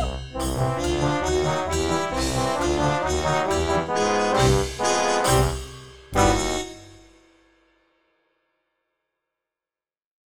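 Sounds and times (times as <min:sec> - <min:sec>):
party polka dance music: 0:00.0 - 0:06.9.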